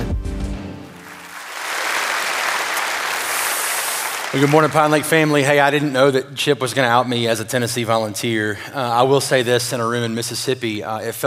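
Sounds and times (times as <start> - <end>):
church congregation applause welcoming a speaker: 0.6 - 6.0
speech: 4.4 - 11.2.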